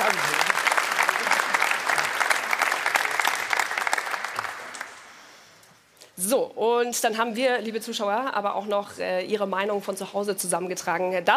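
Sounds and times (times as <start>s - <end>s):
audience applause: 0.0s - 5.4s
speech: 6.2s - 11.3s.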